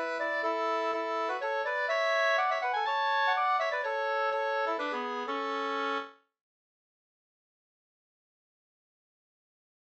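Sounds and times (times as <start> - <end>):
polska folk dance tune: 0.0 - 6.1.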